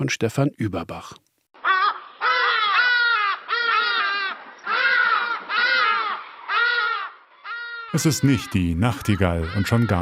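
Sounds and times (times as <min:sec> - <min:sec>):
speech: 0:00.0 - 0:01.2, 0:07.9 - 0:10.0
hadeda ibis harsh wailing calls: 0:01.6 - 0:10.0.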